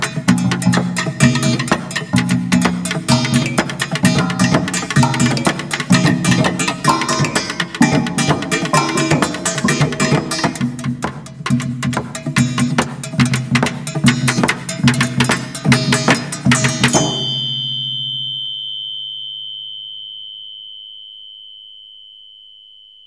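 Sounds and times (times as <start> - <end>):
Baschet sound structures playing samba: 0.0 - 18.4.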